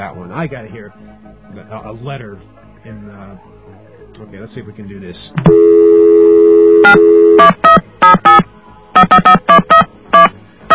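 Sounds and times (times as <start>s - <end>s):
speech: 0.0s - 8.5s, 9.1s - 9.8s
touch-tone dialing beeps: 5.4s - 8.4s, 9.0s - 10.7s.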